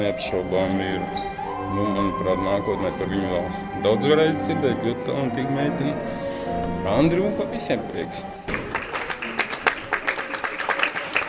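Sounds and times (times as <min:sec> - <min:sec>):
speech: 0:00.0 - 0:08.6
audience applause at theatre premiere: 0:08.5 - 0:11.2.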